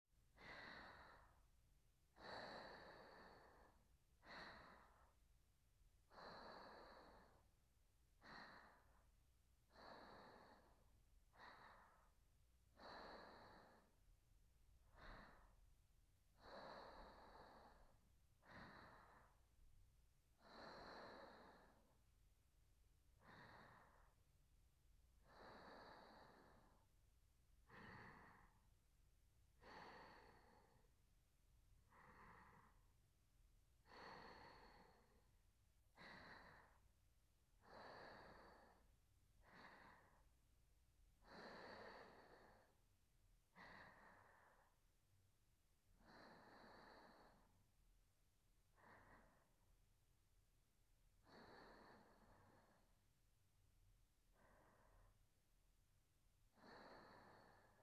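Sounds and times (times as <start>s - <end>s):
sleeping breath: 0.4s - 1.5s, 2.1s - 5.2s, 6.0s - 14.1s, 14.8s - 15.7s, 16.3s - 19.7s, 20.3s - 22.0s, 23.1s - 24.2s, 25.2s - 27.0s, 27.6s - 28.8s, 29.5s - 31.2s, 31.8s - 33.0s, 33.8s - 40.4s, 41.2s - 44.9s, 45.9s - 47.7s, 48.6s - 49.7s, 51.2s - 53.0s, 54.2s - 55.2s, 56.5s - 57.8s.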